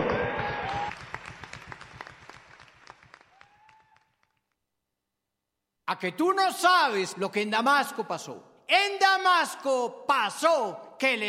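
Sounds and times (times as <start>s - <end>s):
audience applause: 0.0s - 4.4s
speech: 5.9s - 11.2s.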